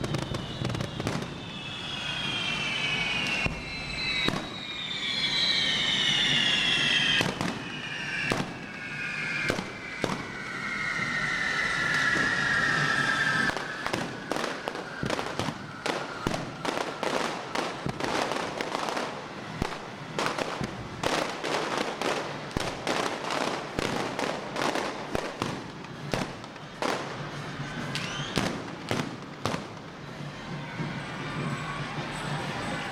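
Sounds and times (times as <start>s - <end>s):
fireworks bangs and crackles in a town square: 0.0s - 32.9s.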